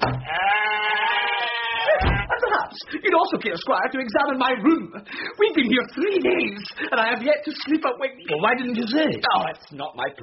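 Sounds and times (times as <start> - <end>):
sheep bleating in the hallways: 0.2 - 2.4
laughter: 1.6 - 3.0
speech: 2.8 - 10.2.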